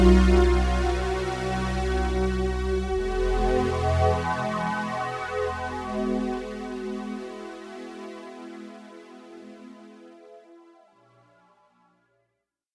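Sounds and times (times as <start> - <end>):
synthesizer harmonies: 0.0 - 10.1.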